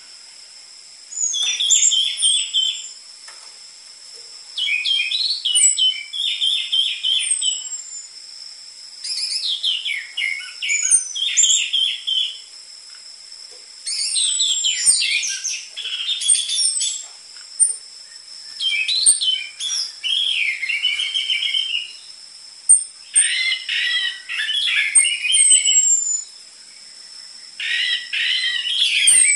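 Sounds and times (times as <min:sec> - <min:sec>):
orange-headed thrush singing varied whistles and twittering: 0:01.1 - 0:03.0, 0:04.5 - 0:08.2, 0:09.0 - 0:12.5, 0:13.8 - 0:29.3.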